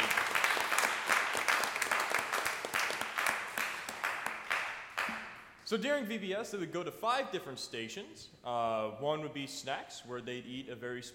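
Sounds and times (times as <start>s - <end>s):
audience applause: 0.0s - 5.2s
speech: 5.7s - 11.1s.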